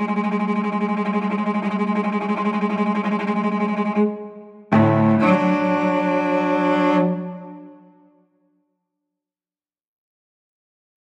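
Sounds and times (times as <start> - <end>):
solo cello: 0.0 - 8.2.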